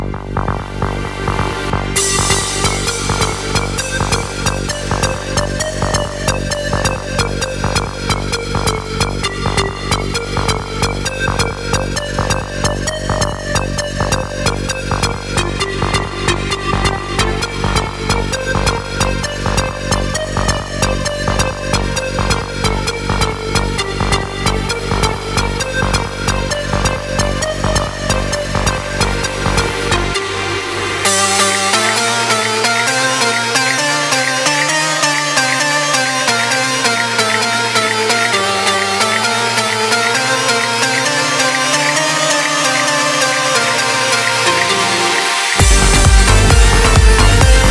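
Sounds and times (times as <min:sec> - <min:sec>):
rising flute: 0:00.1 - 0:47.6.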